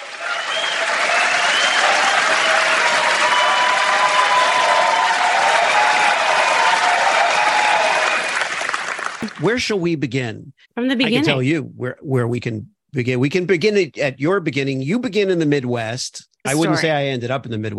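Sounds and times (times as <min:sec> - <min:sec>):
crowd applauding and cheering: 0:00.0 - 0:09.7
speech: 0:09.4 - 0:17.7.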